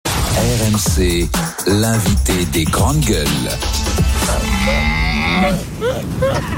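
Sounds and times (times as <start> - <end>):
speech: 0.5 - 6.5
male dromedary camel in rut calling: 4.0 - 6.5.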